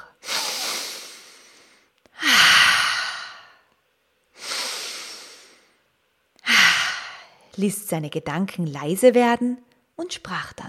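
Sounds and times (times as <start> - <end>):
deep breathy exhale: 0.1 - 3.6, 4.4 - 5.8
speech: 7.6 - 10.6.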